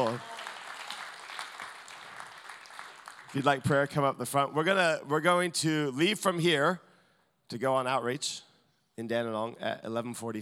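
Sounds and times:
audience clapping: 0.0 - 4.0
speech: 0.1 - 0.3, 3.3 - 6.8, 7.5 - 10.3.

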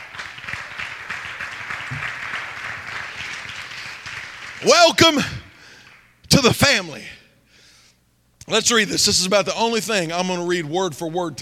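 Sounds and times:
group clapping hands: 0.0 - 6.2
speech: 4.6 - 5.4, 6.4 - 7.2, 8.5 - 11.4.

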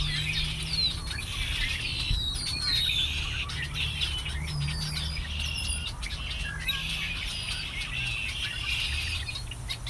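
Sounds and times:
birds calling: 0.0 - 9.8.

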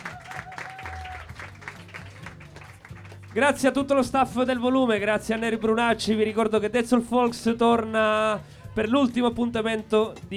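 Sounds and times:
audience applause: 0.0 - 3.6
speech: 3.4 - 10.3.

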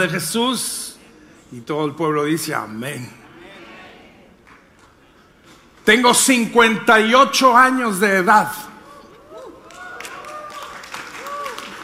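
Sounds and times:
speech: 0.0 - 0.9, 1.5 - 3.2, 5.8 - 8.7
audience applause: 9.3 - 11.8.

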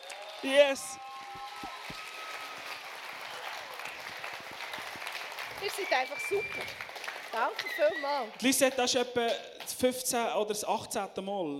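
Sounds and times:
audience applause: 0.0 - 9.0
speech: 0.4 - 1.1, 5.6 - 11.5.

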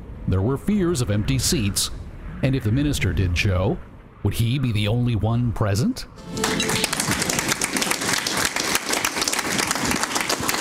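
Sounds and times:
speech: 0.3 - 7.2
luncheon audience applause welcoming a government minister: 6.2 - 10.5.

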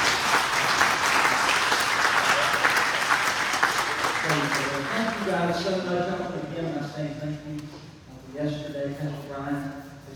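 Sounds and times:
audience clapping: 0.0 - 5.6
speech: 5.4 - 9.8.

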